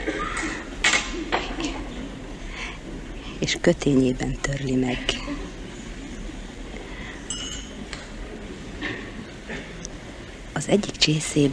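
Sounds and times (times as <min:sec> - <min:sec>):
low steady hum: 0:00.0 - 0:11.5
speech: 0:03.4 - 0:05.4, 0:10.6 - 0:11.5
small spoon dropped while a tea tray is set: 0:07.3 - 0:07.8.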